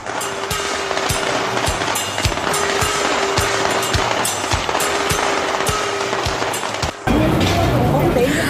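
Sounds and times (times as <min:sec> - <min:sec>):
busy street bustle in Chinatown in New York: 0:00.0 - 0:08.4.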